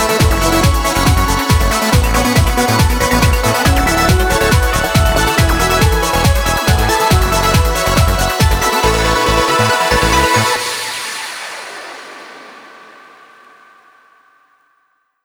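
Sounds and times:
shooter music: 0.0 - 12.0.

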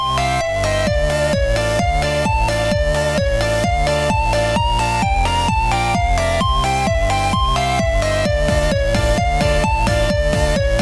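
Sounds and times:
highly scuffed triangle beats: 0.1 - 10.7.

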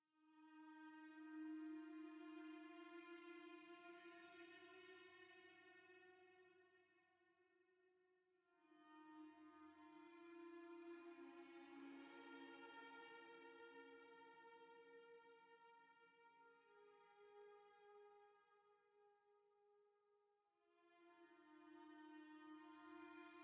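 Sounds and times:
cello solo: 0.3 - 6.6, 8.7 - 18.0, 20.8 - 23.4.

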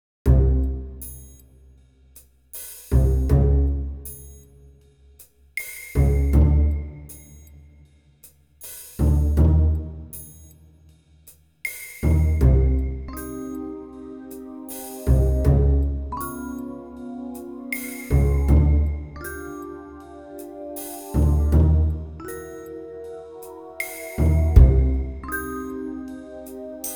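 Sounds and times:
strange pizzicato strings: 0.3 - 1.0, 2.9 - 4.0, 6.0 - 7.1, 9.0 - 10.1, 12.0 - 26.9.

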